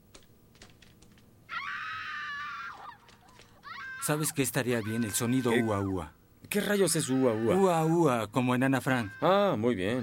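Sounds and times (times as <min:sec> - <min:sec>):
high-pitched scream sound effect: 0:01.5 - 0:06.1, 0:06.8 - 0:08.0, 0:08.7 - 0:09.6
speech: 0:04.0 - 0:10.0.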